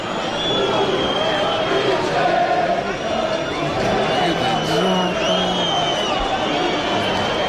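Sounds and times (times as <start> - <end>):
crowd of football fans singing a club anthem: 0.2 - 7.4.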